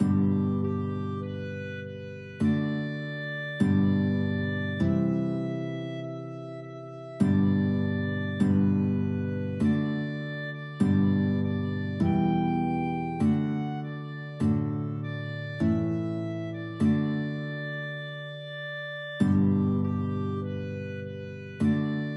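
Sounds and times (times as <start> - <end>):
clarinet playing a hymn: 0.0 - 22.1
guitar playing a hymn: 0.0 - 22.1.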